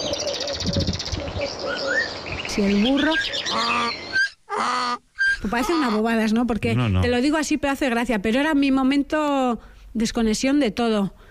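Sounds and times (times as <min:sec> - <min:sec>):
small birds chirping: 0:00.0 - 0:06.0
speech: 0:00.7 - 0:11.2.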